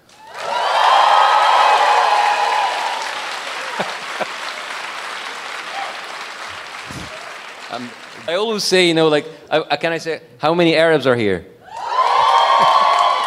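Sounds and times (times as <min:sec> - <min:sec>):
applause: 0:00.0 - 0:08.9, 0:11.8 - 0:13.2
audience cheering: 0:00.1 - 0:08.8, 0:11.7 - 0:13.2
laughter: 0:03.3 - 0:06.0
speech: 0:07.8 - 0:11.5.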